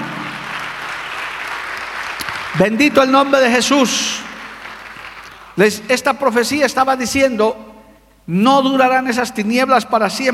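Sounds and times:
audience applauding: 0.0s - 5.6s
speech: 2.6s - 4.3s, 5.6s - 7.7s, 8.3s - 10.3s.

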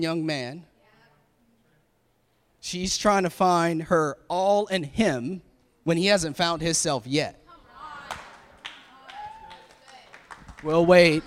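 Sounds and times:
speech: 0.0s - 0.7s, 2.6s - 7.4s, 10.6s - 11.2s
scattered hand claps from an audience: 8.0s - 11.2s.

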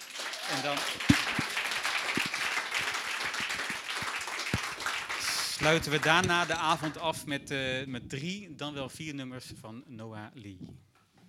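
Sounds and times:
crowd applauding: 0.0s - 7.1s
speech: 0.6s - 1.4s, 5.6s - 10.9s.

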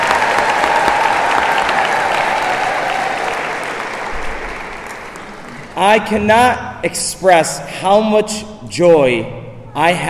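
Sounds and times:
audience clapping: 0.0s - 6.1s
speech: 5.8s - 10.0s.

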